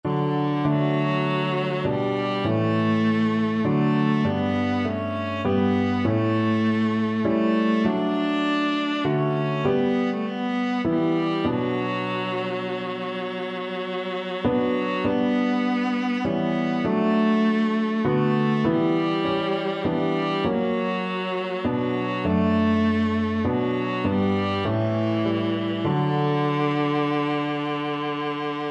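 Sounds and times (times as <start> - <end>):
viola: 0.0 - 28.7.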